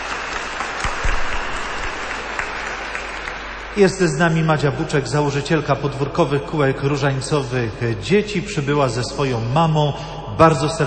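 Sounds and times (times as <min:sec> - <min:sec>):
warm audience applause: 0:00.0 - 0:03.9
speech: 0:03.8 - 0:10.8.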